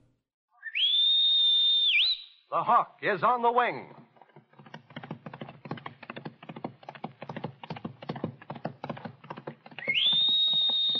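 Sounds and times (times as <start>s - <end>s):
shrill whistle: 0.5s - 2.5s, 9.8s - 10.9s
speech: 2.5s - 4.0s.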